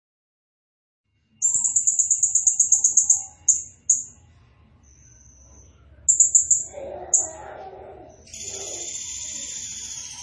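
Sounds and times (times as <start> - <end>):
blue-crowned hanging parrot calls: 1.4 - 4.1, 6.1 - 10.2.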